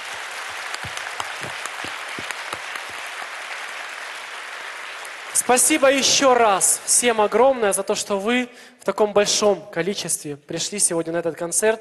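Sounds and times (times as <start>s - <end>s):
audience applause: 0.0s - 7.7s
speech: 5.4s - 11.7s.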